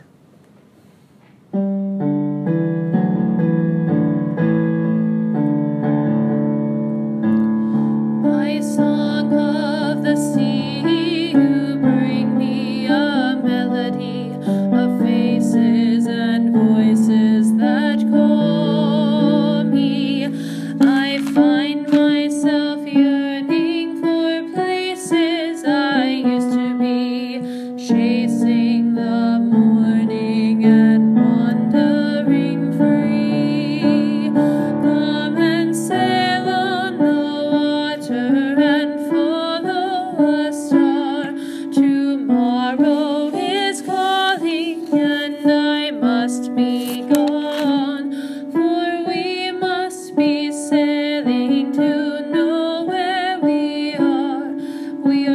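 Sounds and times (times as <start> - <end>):
alto melody: 1.5 - 27.3, 28.1 - 55.3.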